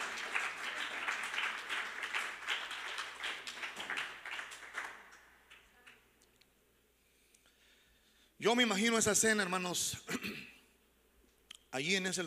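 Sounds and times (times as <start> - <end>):
audience applause: 0.0 - 6.0
speech: 8.4 - 10.4, 11.8 - 12.2.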